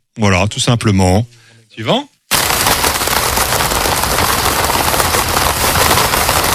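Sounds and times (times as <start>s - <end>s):
speech: 0.2s - 2.1s
rain pattering on a taut fabric tent: 2.3s - 6.5s.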